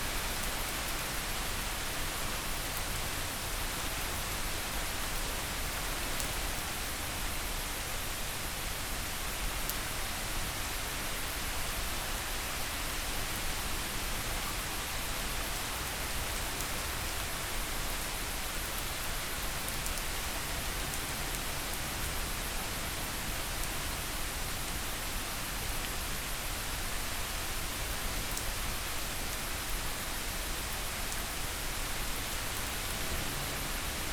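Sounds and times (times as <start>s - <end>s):
relaxing rain: 0.0s - 34.1s.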